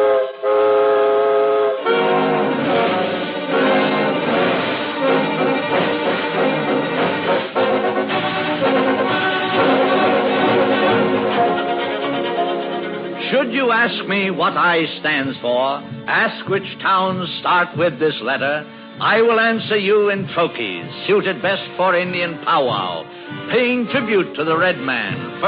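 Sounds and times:
steam train whistle: 0.0 - 13.2
steam train chugging while departing: 0.0 - 25.4
speech: 14.1 - 25.4.

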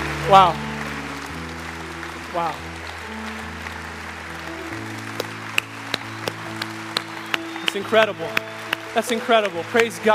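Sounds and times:
audience clapping: 0.0 - 10.1
speech: 0.3 - 0.7, 2.3 - 2.8, 7.7 - 10.1.

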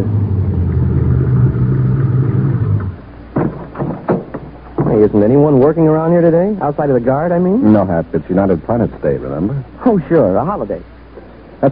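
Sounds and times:
car driving up and stopping: 0.0 - 3.1
speech: 5.0 - 10.9.

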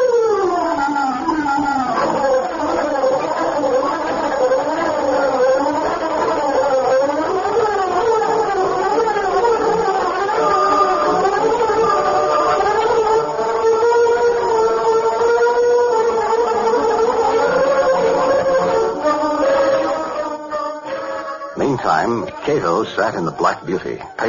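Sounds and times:
shrill signal whistle on a deserted street: 0.0 - 22.8
speech: 22.8 - 24.2.

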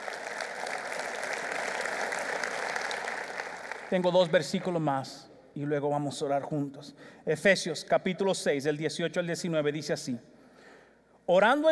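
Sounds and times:
audience applause: 0.0 - 4.8
speech: 3.9 - 10.3, 11.3 - 11.6.

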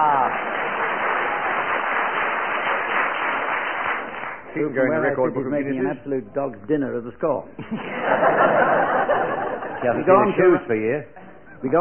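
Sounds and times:
audience applause: 0.0 - 4.7
speech: 4.5 - 9.0, 9.8 - 11.7
laughter: 7.6 - 11.6.

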